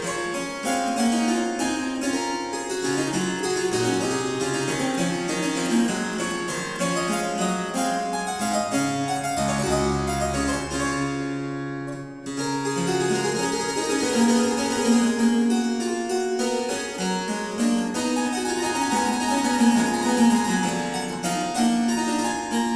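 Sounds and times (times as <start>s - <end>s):
canon at the octave on harpsichord: 0.0s - 22.7s.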